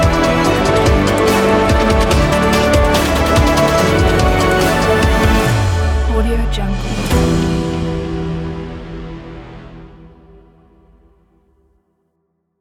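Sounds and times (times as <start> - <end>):
epic dubstep music: 0.0 - 9.1.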